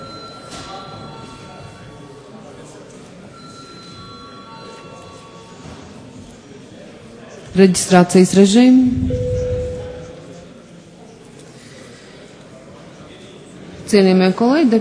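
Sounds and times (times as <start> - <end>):
speech: 7.6 - 9.3, 13.9 - 14.7
parliament session bell ringing: 8.9 - 10.4.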